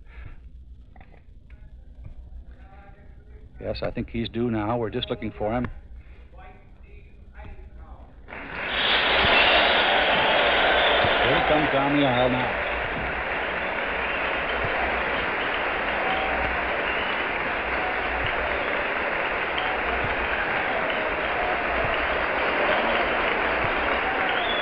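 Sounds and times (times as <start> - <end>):
speech: 3.6 - 5.8, 11.9 - 12.7
audience applause in large hall: 8.3 - 24.6.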